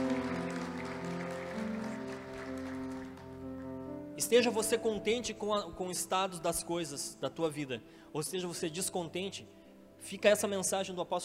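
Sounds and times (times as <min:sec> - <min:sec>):
audience applause: 0:00.0 - 0:03.8
speech: 0:04.2 - 0:11.2.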